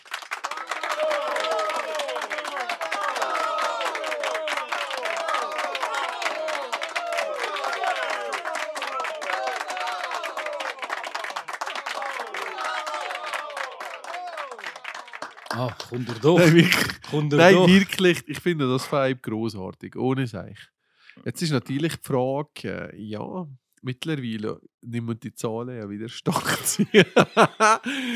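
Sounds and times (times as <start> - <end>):
applause from a sizable crowd: 0.0 - 18.1, 26.8 - 28.1
many voices whooping and calling out: 0.5 - 14.8
laughter: 15.5 - 18.1, 26.3 - 28.1
speech: 15.6 - 28.1.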